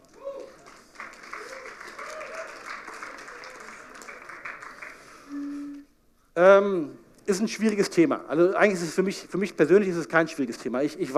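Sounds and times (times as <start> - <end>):
audience applause: 0.0 - 5.3
speech: 6.4 - 11.1.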